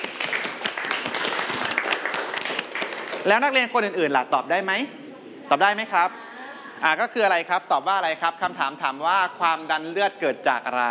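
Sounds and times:
students applauding a classmate: 0.0s - 3.6s
speech: 3.2s - 6.2s, 6.8s - 10.8s.

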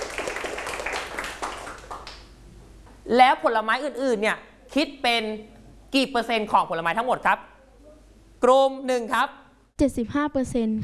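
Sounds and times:
classroom clapping: 0.0s - 2.4s
speech: 3.1s - 7.5s, 8.4s - 10.8s.

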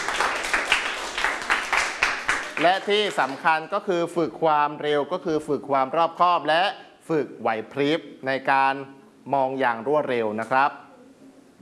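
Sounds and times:
students clapping for a classmate in a classroom: 0.0s - 3.6s
speech: 2.6s - 10.8s.

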